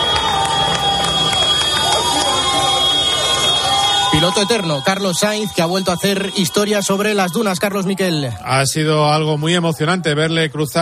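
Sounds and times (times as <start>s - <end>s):
crowd applause at finish line: 0.0s - 8.5s
crowd cheering at finish line: 0.0s - 10.7s
speech: 4.2s - 10.7s.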